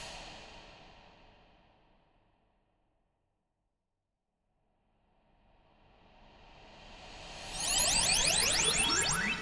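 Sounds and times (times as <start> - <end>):
teleportation disappearing and appearing effect: 7.5 - 9.3.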